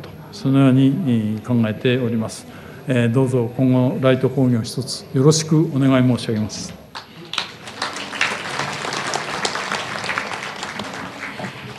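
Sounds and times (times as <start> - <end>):
speech: 0.4 - 6.8
audience applause: 7.0 - 11.7.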